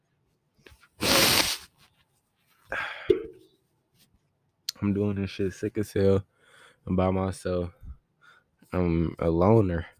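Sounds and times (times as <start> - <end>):
person blowing nose: 0.9 - 1.8
speech: 4.8 - 7.8, 8.7 - 9.9.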